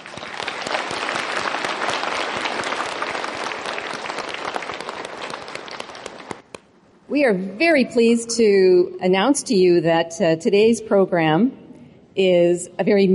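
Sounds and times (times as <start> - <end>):
large audience applause welcoming guests: 0.0 - 6.4
speech: 7.1 - 11.6, 12.2 - 13.1.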